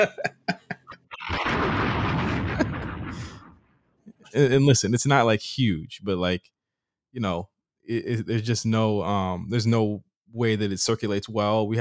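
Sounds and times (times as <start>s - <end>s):
speech: 0.0s - 0.3s, 4.4s - 11.7s
laughter: 0.0s - 1.2s
bomb explosion sound effect with sharp pops and rumbling roar: 1.2s - 3.7s.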